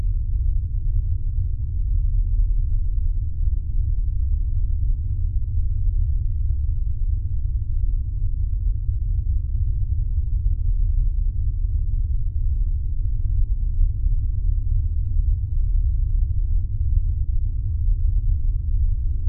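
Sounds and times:
science fiction deep space atmosphere hum drone: 0.0s - 19.2s.

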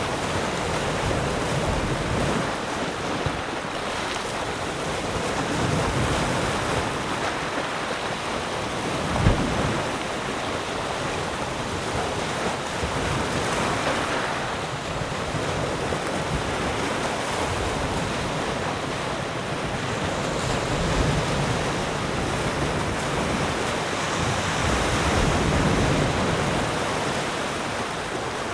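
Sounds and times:
light ocean waves on rocks: 0.0s - 28.5s.

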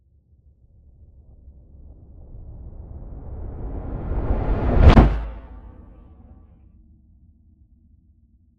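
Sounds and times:
swell: 1.4s - 6.4s.

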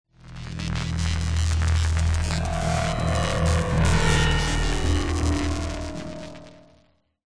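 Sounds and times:
weird science fiction power surge: 1.4s - 6.8s.

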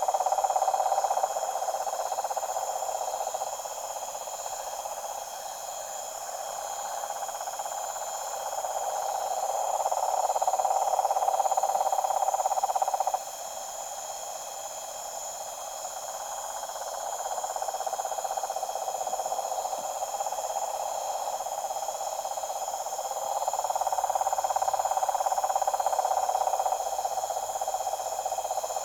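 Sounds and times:
deep toad chorus at a tropical pond at night: 0.0s - 28.8s.

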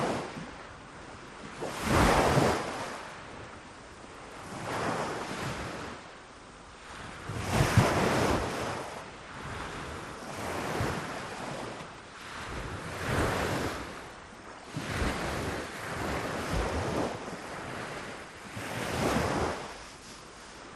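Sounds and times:
close sea waves in the morning: 0.0s - 20.7s.

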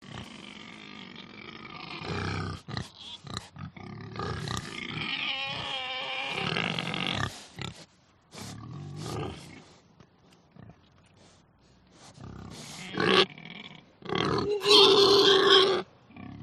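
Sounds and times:
pig giving harsh screaming squeals: 1.7s - 3.5s, 4.4s - 7.4s, 12.6s - 13.3s, 14.2s - 15.9s.

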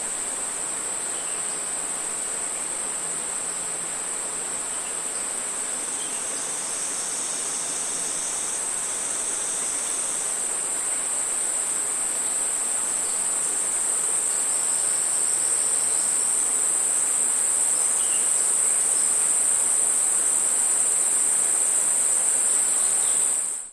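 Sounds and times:
rainforest cicada: 0.0s - 23.7s
rainforest crickets: 0.0s - 23.7s.

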